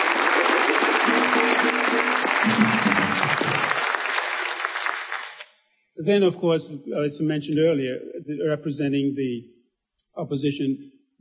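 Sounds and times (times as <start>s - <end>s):
crowd applause: 0.0s - 5.4s
speech: 6.0s - 9.6s, 10.2s - 10.9s.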